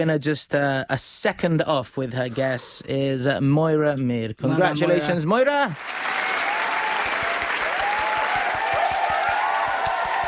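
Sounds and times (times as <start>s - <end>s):
speech: 0.0s - 6.2s
audience applause: 5.7s - 10.2s.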